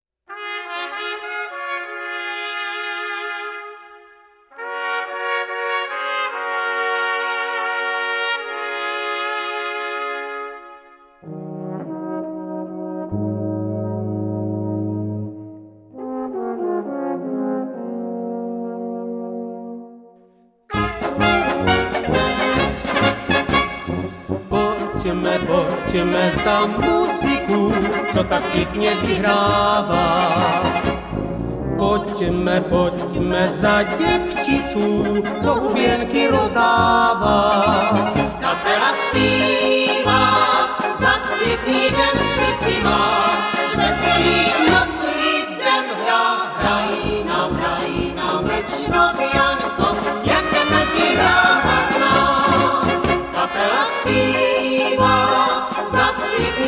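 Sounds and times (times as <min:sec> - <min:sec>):
polka music: 0:00.3 - 0:56.6.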